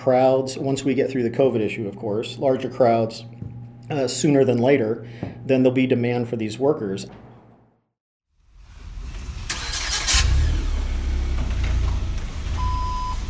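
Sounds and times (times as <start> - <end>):
speech: 0.0 - 7.3
forklift engine backing up in a warehouse: 9.5 - 13.2.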